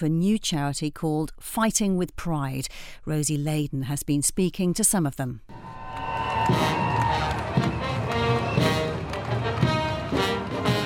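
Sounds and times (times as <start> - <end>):
speech: 0.0 - 5.6, 6.4 - 6.8
crowd cheering at Pride parade: 5.5 - 10.8
heavy drum-like thumps: 6.4 - 10.8.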